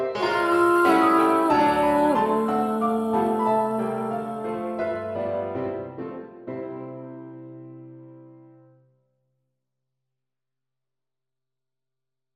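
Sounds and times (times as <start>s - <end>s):
polka vocals only: 0.2s - 5.6s.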